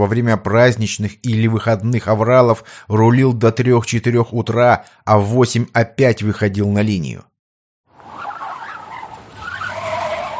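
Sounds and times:
speech: 0.0 - 7.3
tire squeal: 7.9 - 10.3.

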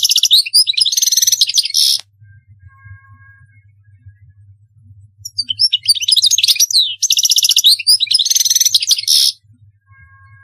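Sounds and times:
European goldfinch twittering: 0.0 - 2.0, 5.2 - 9.4.

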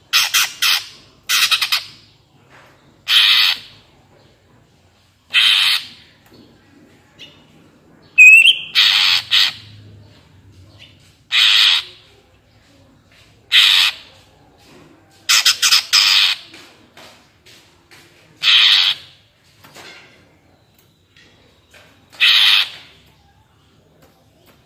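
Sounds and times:
Greater green leafbird harsh squawks: 0.1 - 2.0, 3.1 - 3.8, 5.3 - 6.1, 8.2 - 9.7, 11.3 - 12.1, 13.5 - 14.1, 15.3 - 16.4, 18.4 - 19.2, 22.2 - 22.9.

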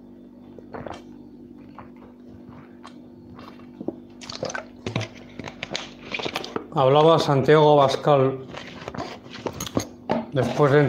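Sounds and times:
soft wet swallows: 0.5 - 4.8
water sloshing and glugging from a plastic bottle: 0.6 - 5.1
speech: 6.8 - 8.5, 10.4 - 10.8.

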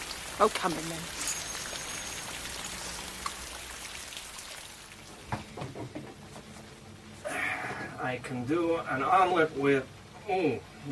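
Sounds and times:
rain falling: 0.0 - 10.8
speech: 0.4 - 1.2, 8.0 - 10.8.

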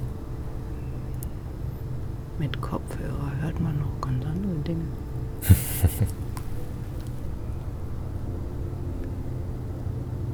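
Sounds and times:
aircraft passing overhead above the Heessener Wald in Hamm, Germany: 0.0 - 10.3
speech: 2.4 - 6.2
laughter: 5.4 - 6.7.

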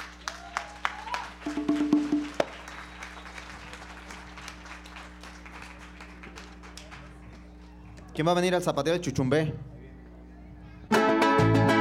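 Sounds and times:
audience applause: 0.0 - 7.7
speech: 8.2 - 9.7.

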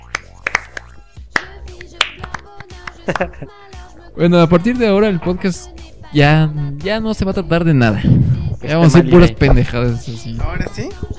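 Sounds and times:
applause: 0.1 - 2.4
speech: 3.1 - 11.1.

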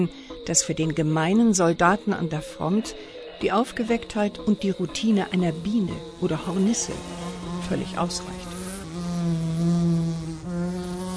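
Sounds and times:
speech: 0.0 - 8.5
housefly buzzing in flight: 5.0 - 11.1.

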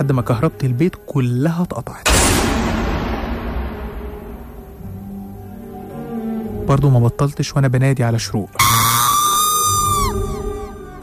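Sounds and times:
speech: 0.0 - 2.6, 6.7 - 8.9
low rumble: 2.1 - 5.6
woman screaming inside a bathroom: 8.6 - 11.0.

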